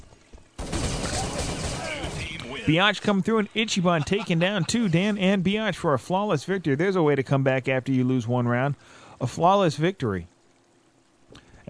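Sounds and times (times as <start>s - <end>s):
rapid G36 rifle fire in a video game: 0.6s - 2.7s
laughter: 1.1s - 5.2s
speech: 2.7s - 10.3s.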